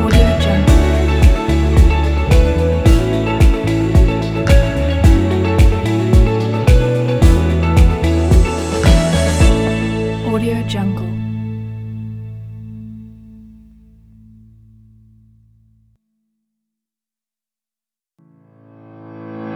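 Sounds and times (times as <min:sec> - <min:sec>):
hopeful inspiring positive corporate music: 0:00.0 - 0:11.9.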